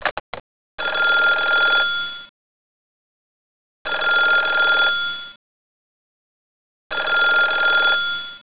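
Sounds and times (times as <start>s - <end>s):
telephone: 0.0s - 2.3s, 3.9s - 5.4s, 6.9s - 8.4s.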